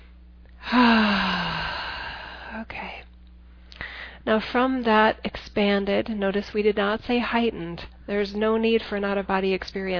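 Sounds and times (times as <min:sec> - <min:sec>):
deep breath during a guided meditation: 0:00.6 - 0:02.6
speech: 0:04.3 - 0:09.9.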